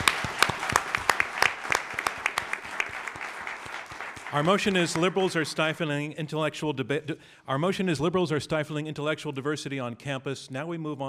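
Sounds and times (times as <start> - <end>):
audience applause: 0.0 - 5.7
speech: 4.3 - 11.0.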